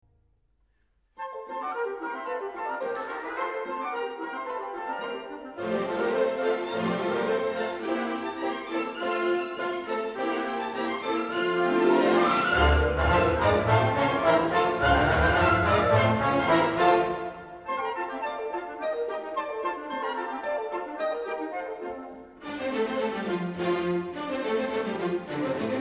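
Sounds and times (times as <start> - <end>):
Hungarian scherzo music piece: 1.2 - 25.8.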